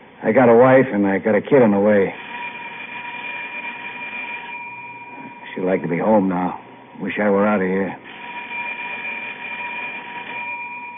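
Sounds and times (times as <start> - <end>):
speech: 0.2 - 2.2, 5.6 - 8.1
emergency bell ringing in an elevator: 2.4 - 6.2, 8.1 - 10.9.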